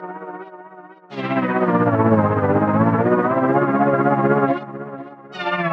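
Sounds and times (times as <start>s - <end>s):
musical sequence: 1.1s - 5.6s.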